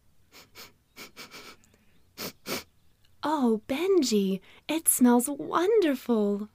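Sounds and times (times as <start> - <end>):
quick breathy sniffs at a flower: 0.3 - 2.7
speech: 3.3 - 6.5.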